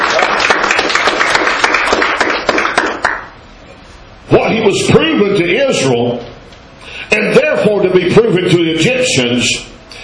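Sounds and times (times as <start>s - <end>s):
hand clapping in praise: 0.0s - 3.4s
speech: 4.6s - 6.4s, 7.1s - 9.8s.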